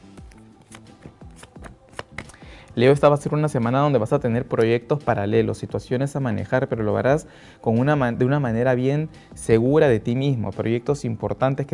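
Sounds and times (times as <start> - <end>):
tarot cards shuffled by hand: 0.0 - 2.5
speech: 2.8 - 11.7.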